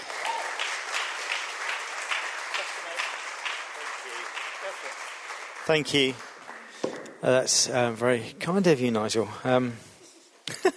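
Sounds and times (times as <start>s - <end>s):
audience applause welcoming a speaker: 0.0s - 6.8s
speech: 5.7s - 6.3s, 7.2s - 9.9s.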